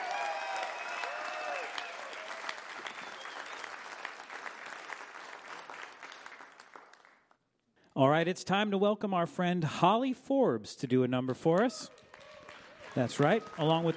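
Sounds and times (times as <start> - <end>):
live concert audience clapping for a musician: 0.0 - 7.4, 11.5 - 13.9
audience whistles: 0.5 - 3.9
speech: 8.0 - 12.0, 13.0 - 13.9.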